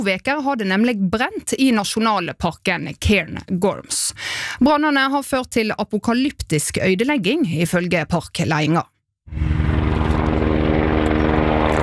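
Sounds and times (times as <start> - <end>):
speech: 0.0 - 9.5
firefighting helicopter flying overhead: 9.3 - 11.8.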